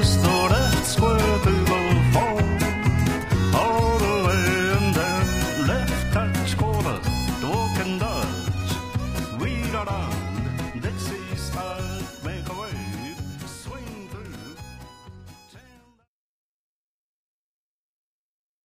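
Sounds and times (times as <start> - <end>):
square dance vocal: 0.0 - 14.6.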